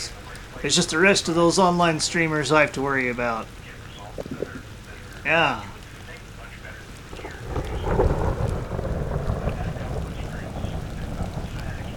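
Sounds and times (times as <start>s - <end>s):
faint rushing noise: 0.0s - 11.9s
thunder rumbling: 0.0s - 11.9s
speech: 0.6s - 3.6s, 5.2s - 5.7s.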